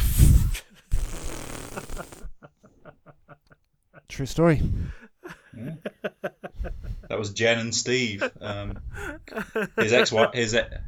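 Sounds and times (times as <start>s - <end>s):
balloon being blown up with puffs of breath: 0.0s - 2.3s
laughter: 1.7s - 4.1s, 5.2s - 10.8s
speech: 4.1s - 5.0s, 7.2s - 10.8s.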